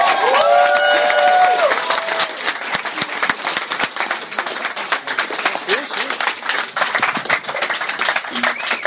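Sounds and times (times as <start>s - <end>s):
crowd cheering and whoops: 0.0s - 2.4s
audience applause: 0.0s - 8.8s.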